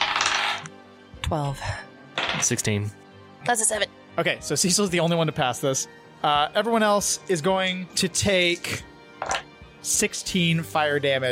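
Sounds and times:
dice clattering across a hard surface: 0.0 - 0.7, 2.2 - 2.6, 9.2 - 9.5
speech: 1.3 - 1.8, 2.4 - 11.2.

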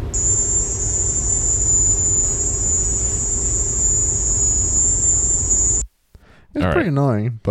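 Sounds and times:
high-pitched sustained chirping of bugs: 0.0 - 5.8
low constant rumble: 0.0 - 5.8
speech: 6.6 - 7.4.

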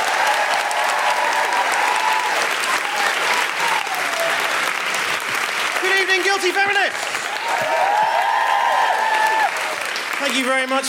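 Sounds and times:
crowd cheering and whooping at a live comedy show: 0.0 - 4.9, 7.2 - 10.0
audience clapping at a live comedy show: 0.0 - 10.8
speech: 6.4 - 8.0, 10.2 - 10.8.

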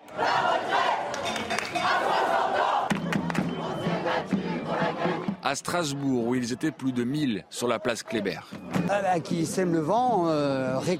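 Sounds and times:
protest crowd chanting slogans: 0.0 - 8.8
speech: 5.5 - 10.9.

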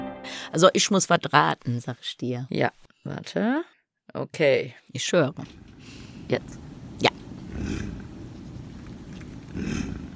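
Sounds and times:
speech: 0.4 - 8.0, 9.6 - 10.0
deep animal growling: 7.4 - 8.4, 9.0 - 10.1.

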